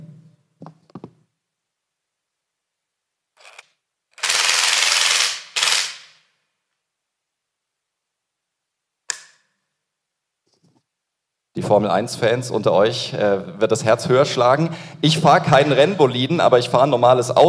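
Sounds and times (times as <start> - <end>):
power tool like a drill running: 3.4 - 6.2
sharp click: 9.1 - 9.5
speech: 11.7 - 17.4.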